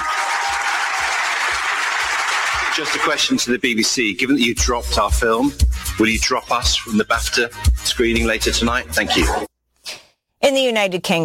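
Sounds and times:
round of applause at an award ceremony: 0.0s - 3.5s
speech: 2.8s - 9.5s, 10.5s - 11.2s.

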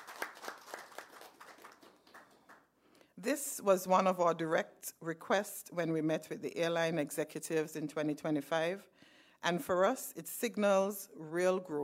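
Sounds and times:
small group clapping: 0.0s - 2.8s
speech: 3.2s - 11.8s.

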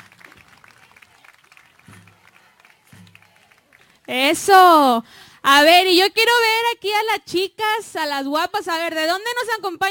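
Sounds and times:
audience applause: 0.0s - 4.1s
speech: 4.1s - 9.8s.

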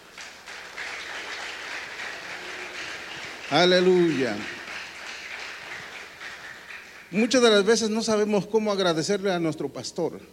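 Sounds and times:
audience applauding: 0.0s - 7.9s
speech: 3.5s - 4.6s, 7.1s - 10.3s.

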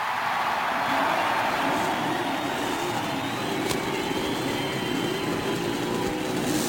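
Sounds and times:
Cosworth racing engines restarting and roaring: 0.0s - 6.6s.

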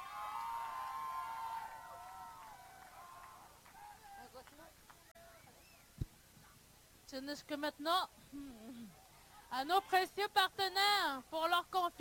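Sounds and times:
festival crowd cheering and whooping: 0.0s - 4.3s
speech: 7.1s - 8.6s, 9.5s - 11.9s.

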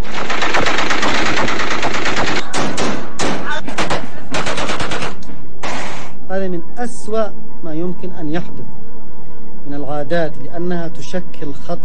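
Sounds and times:
celebratory gunfire with live ammunition: 0.0s - 6.2s
speech: 6.8s - 8.8s, 9.7s - 11.8s.

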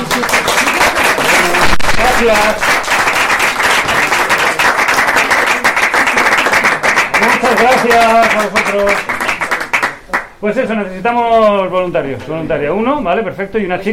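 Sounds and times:
audience applause: 0.0s - 10.3s
speech: 2.2s - 2.8s, 7.4s - 9.2s, 10.4s - 13.9s.

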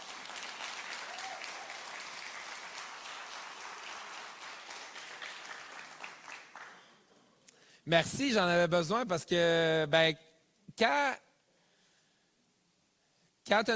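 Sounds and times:
audience applause: 0.0s - 7.0s
speech: 7.9s - 11.2s, 13.5s - 13.7s.

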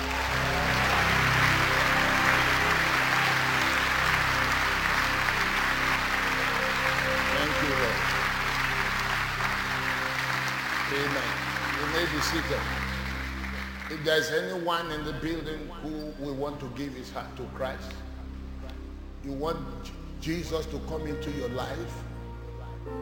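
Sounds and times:
audience applause: 0.0s - 14.6s
sustained musical tones: 0.0s - 23.0s
speech: 12.0s - 12.8s, 13.9s - 18.0s, 19.2s - 22.1s.

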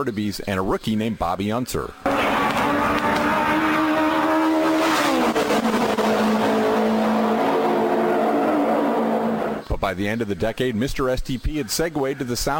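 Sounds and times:
speech: 0.0s - 3.0s, 9.8s - 12.5s
Novi race car engine roaring with harmonic whine: 2.1s - 9.7s.

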